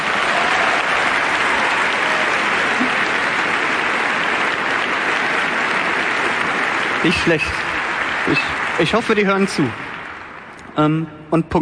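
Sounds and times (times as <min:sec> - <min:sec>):
applause: 0:00.0 - 0:11.6
speech: 0:07.0 - 0:07.7, 0:08.3 - 0:09.9, 0:10.8 - 0:11.6.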